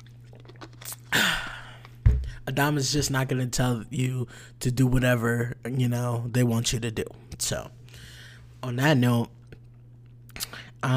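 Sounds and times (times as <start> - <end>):
person drinking water: 0.0 - 2.4
speech: 2.5 - 7.8, 8.6 - 9.4, 10.4 - 10.9.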